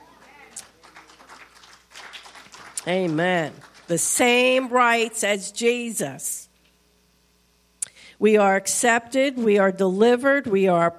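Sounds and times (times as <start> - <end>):
audience clapping: 0.2 - 4.6
speech: 2.8 - 6.4, 8.2 - 10.9.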